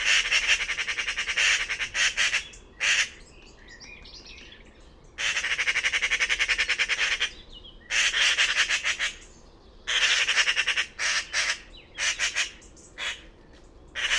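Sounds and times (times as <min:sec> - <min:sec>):
bird squawking: 0:00.0 - 0:03.2, 0:05.2 - 0:09.3, 0:09.9 - 0:13.3, 0:14.0 - 0:14.1.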